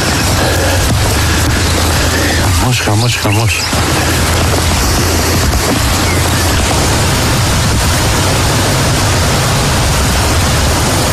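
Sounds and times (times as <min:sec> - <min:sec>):
heavy hailstorm in the Larissa area: 0:00.0 - 0:11.1
heavy rain in the Larissa area: 0:00.0 - 0:11.1
speech: 0:02.8 - 0:06.0.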